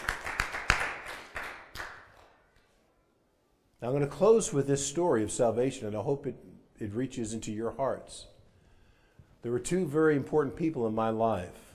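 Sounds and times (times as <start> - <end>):
audience hand clapping: 0.0 - 2.8
speech: 3.8 - 8.3, 9.4 - 11.6.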